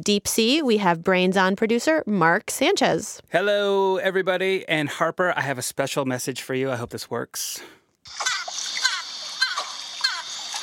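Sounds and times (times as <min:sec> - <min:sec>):
speech: 0:00.0 - 0:08.5
dolphin vocalizations: 0:08.1 - 0:10.6.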